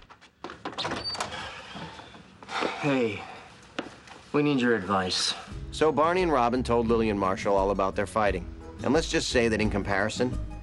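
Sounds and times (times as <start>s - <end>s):
door opening: 0.4s - 2.3s
speech: 2.8s - 3.3s, 4.3s - 10.5s.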